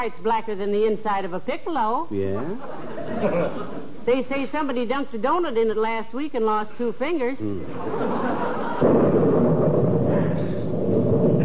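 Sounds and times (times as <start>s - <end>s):
speech: 0.0s - 9.3s
laughter: 2.2s - 4.0s, 7.5s - 9.0s
thunder crash during a lightning storm: 7.7s - 11.4s.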